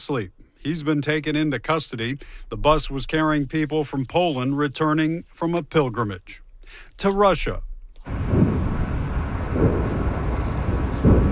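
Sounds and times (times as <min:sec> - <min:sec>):
speech: 0:00.0 - 0:08.3
steady dull roar: 0:08.0 - 0:11.3
distant explosions rumbling: 0:08.1 - 0:11.3.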